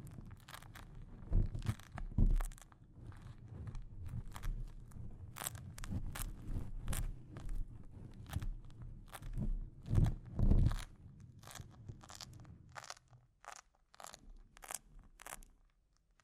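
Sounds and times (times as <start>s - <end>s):
microphone scratching and rubbing: 0.0s - 12.2s.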